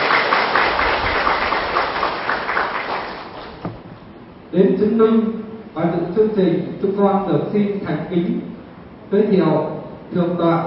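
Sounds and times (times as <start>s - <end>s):
audience applause: 0.0s - 3.6s
speech: 4.6s - 8.5s, 9.1s - 10.6s.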